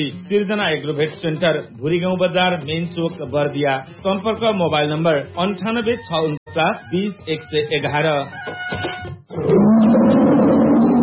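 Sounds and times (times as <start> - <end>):
speech: 0.0 - 8.7
tiger roaring: 9.3 - 11.0.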